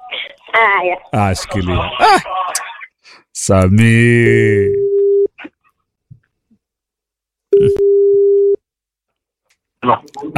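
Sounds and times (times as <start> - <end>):
speech: 0.1 - 2.6, 3.4 - 4.9, 9.8 - 10.3
telephone tone while placing a call to Nairobi: 4.7 - 5.3, 7.5 - 8.6.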